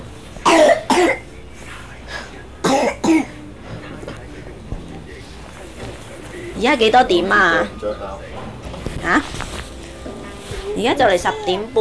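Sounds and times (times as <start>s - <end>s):
person coughing: 0.4s - 1.3s, 2.6s - 3.4s
speech: 6.6s - 8.4s, 9.0s - 9.4s, 10.8s - 11.7s.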